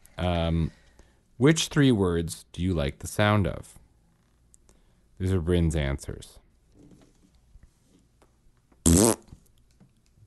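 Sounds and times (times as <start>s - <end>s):
speech: 0.5s - 0.8s, 1.4s - 3.8s, 5.2s - 6.4s
fart: 8.8s - 9.4s.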